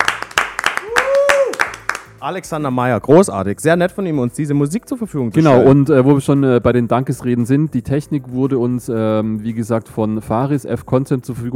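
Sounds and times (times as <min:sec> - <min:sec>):
hosts applauding, clapping: 0:00.0 - 0:02.2
speech: 0:02.2 - 0:11.5.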